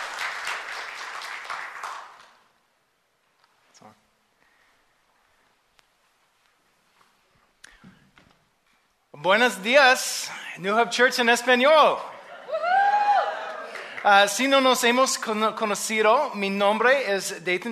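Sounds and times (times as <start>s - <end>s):
welcoming applause from audience: 0.0s - 2.5s, 12.2s - 14.6s
speech: 9.2s - 12.1s, 14.0s - 17.7s.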